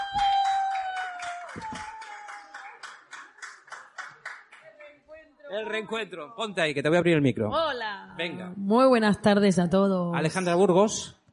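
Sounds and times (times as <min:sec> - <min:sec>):
audience applause: 0:00.0 - 0:04.7
speech: 0:05.6 - 0:11.2.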